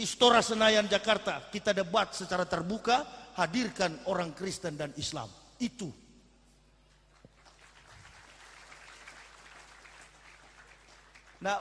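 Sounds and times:
speech: 0.0 - 6.0, 11.4 - 11.6
low constant hum: 0.0 - 11.6
crowd clapping: 7.0 - 11.6.

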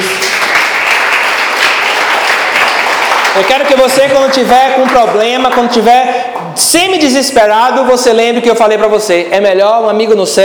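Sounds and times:
church congregation applauding during a service: 0.0 - 6.6
speech: 3.4 - 10.4.

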